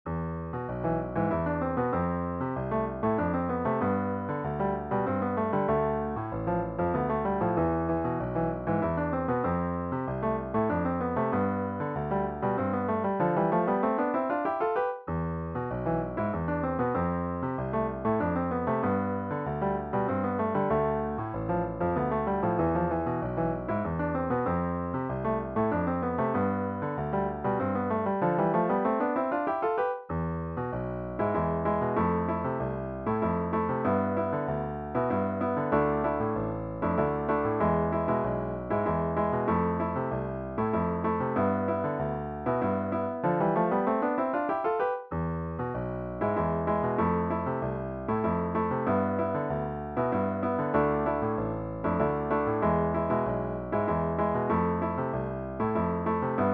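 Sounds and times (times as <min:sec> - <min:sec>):
Spanish-style melody: 0:00.1 - 0:56.5.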